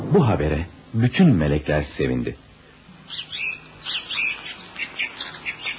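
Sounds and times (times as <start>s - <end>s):
speech: 0.1s - 2.5s
birds chirping and calling: 2.7s - 5.7s.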